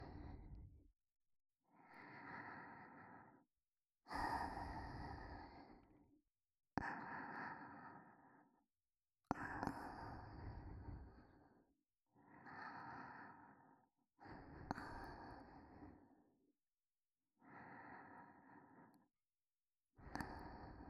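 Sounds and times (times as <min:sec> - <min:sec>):
person breathing softly for sleep: 0:00.0 - 0:00.8, 0:01.7 - 0:03.4, 0:04.1 - 0:06.1, 0:06.8 - 0:08.6, 0:09.3 - 0:16.3, 0:17.4 - 0:19.1, 0:20.0 - 0:20.8.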